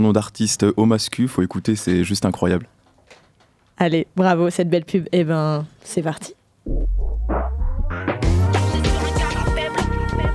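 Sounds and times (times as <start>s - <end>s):
speech: 0.0s - 2.8s, 3.8s - 7.3s
hip-hop musical jingle: 6.7s - 9.7s.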